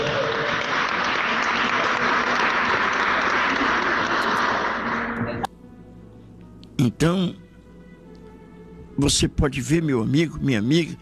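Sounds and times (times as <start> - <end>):
church congregation clapping: 0.0 - 5.5
speech: 6.8 - 7.4, 9.0 - 10.9.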